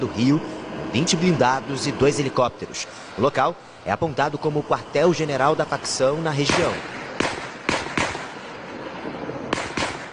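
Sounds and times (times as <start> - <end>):
speech: 0.0 - 7.0
steady hiss: 0.0 - 10.1
gunfire during police operation: 6.5 - 8.4, 9.5 - 10.1.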